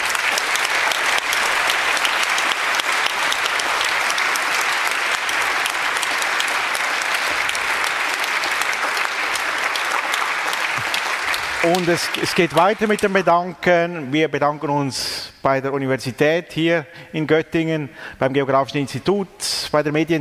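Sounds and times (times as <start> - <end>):
audience applause: 0.0 - 13.5
speech: 11.7 - 20.1.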